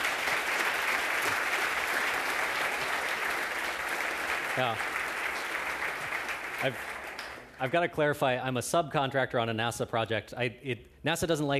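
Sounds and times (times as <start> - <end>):
audience applause: 0.0 - 7.8
speech: 4.6 - 4.9, 6.6 - 6.9, 7.6 - 11.5.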